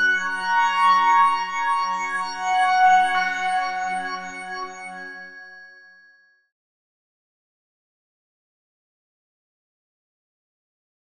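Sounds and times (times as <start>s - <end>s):
Yamaha SY77 brass and crystal synthesizer pads: 0.2s - 5.2s.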